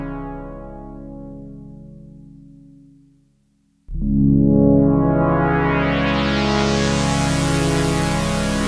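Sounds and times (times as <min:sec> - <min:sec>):
Curtis 4-pole filter with resonance: 0:03.9 - 0:08.6.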